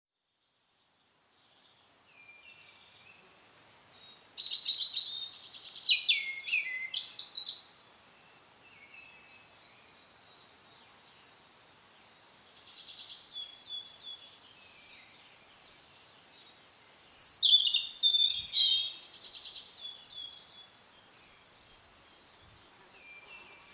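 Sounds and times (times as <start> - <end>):
European robin singing: 1.4 - 11.3, 12.4 - 23.7.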